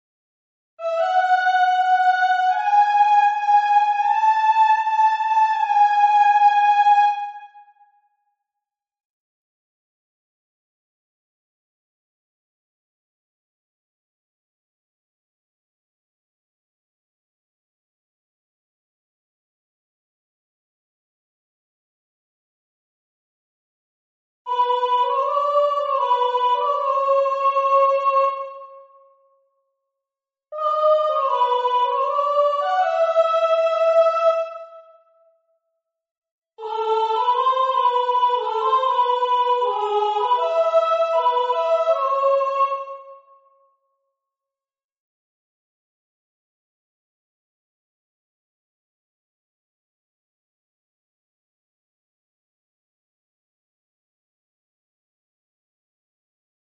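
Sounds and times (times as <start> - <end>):
soprano singing: 0.8 - 7.6, 24.5 - 28.8, 30.6 - 34.9, 36.6 - 43.2.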